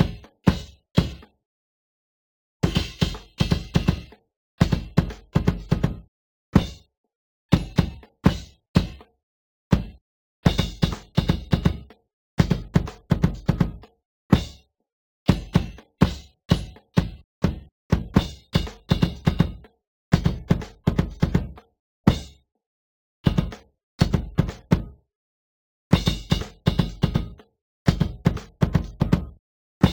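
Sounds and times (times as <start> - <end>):
bass drum: 2.6 - 6.8, 7.5 - 9.0, 9.7 - 14.6, 15.3 - 22.4, 23.3 - 24.9, 25.9 - 29.9.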